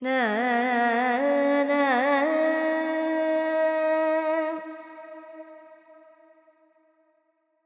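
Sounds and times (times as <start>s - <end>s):
Carnatic female vocal alaps in Dorian mode: 0.0s - 6.1s.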